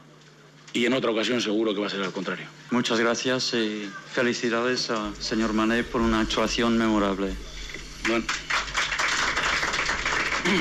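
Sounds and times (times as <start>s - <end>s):
speech: 0.7s - 8.5s
journalists applauding in the Westfalen stadium press room: 8.0s - 10.5s.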